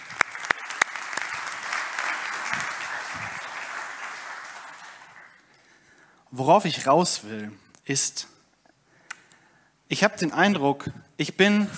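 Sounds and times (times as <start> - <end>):
audience applause: 0.0 - 5.6
speech: 6.3 - 8.3, 9.9 - 11.7.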